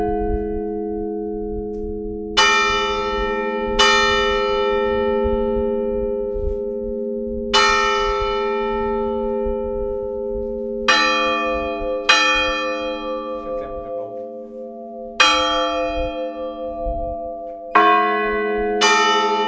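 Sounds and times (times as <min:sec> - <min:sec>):
church bell tower tolling a death knell: 0:00.0 - 0:19.4.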